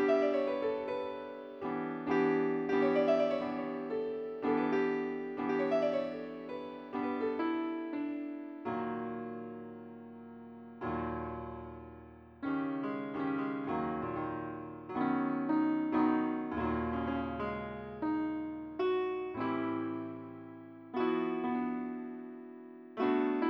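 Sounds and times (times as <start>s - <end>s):
piano: 0.0s - 23.4s.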